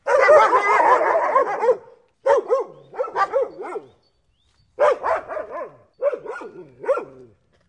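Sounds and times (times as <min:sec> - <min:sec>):
dog barking: 0:00.0 - 0:04.0, 0:04.8 - 0:07.2.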